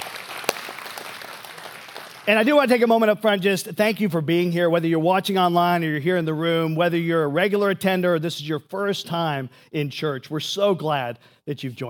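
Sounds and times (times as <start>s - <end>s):
audience applause: 0.0s - 2.3s
speech: 2.3s - 11.8s.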